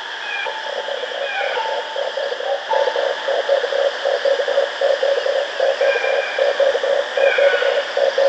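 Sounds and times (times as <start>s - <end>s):
red collared dove low rapidly pulsed rolling coo: 0.5s - 8.2s.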